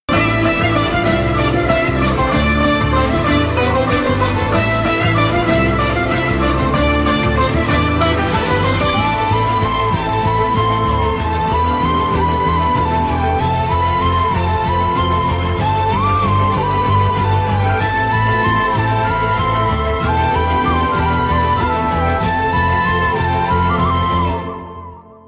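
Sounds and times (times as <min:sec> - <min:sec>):
love failure background music: 0:00.1 - 0:25.2.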